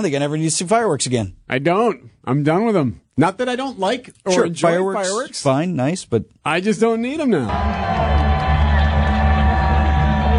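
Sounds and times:
speech: 0:00.0 - 0:08.3
large crowd cheering outdoors at drone show: 0:07.5 - 0:10.3.

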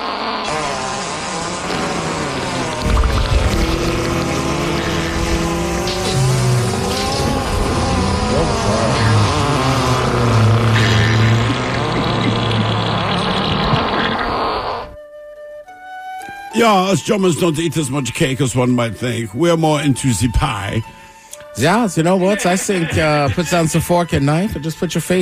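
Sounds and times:
montage of fart sounds: 0:00.0 - 0:15.0
speech: 0:16.6 - 0:21.0, 0:21.6 - 0:25.2
laughter: 0:22.1 - 0:23.9.

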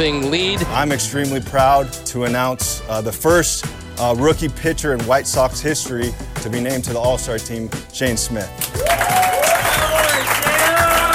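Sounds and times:
speech: 0:00.0 - 0:09.2
crowd clapping and cheering at a White Sox baseball stadium: 0:08.5 - 0:11.1.

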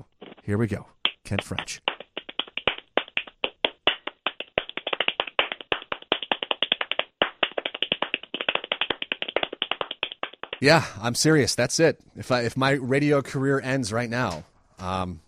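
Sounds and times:
speech: 0:00.0 - 0:01.9, 0:10.6 - 0:15.2
fast hand clapping: 0:00.2 - 0:10.7.

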